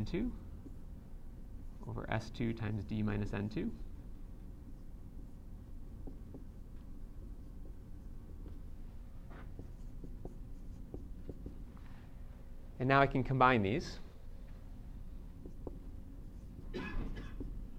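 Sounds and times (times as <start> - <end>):
speech: 0.0 - 0.4, 1.8 - 3.9, 12.8 - 14.0
handwriting equations: 4.7 - 11.7, 15.2 - 17.7.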